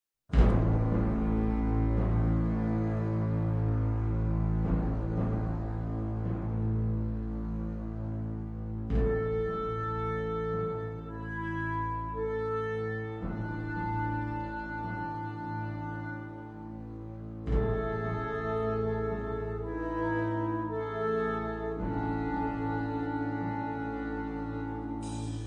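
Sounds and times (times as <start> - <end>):
percussion: 0.3 - 25.4
woodwind ensemble: 0.4 - 25.4.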